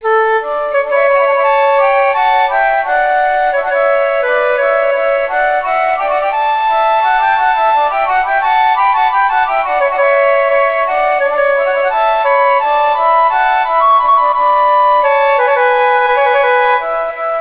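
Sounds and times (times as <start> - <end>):
flute: 0.0 - 17.3.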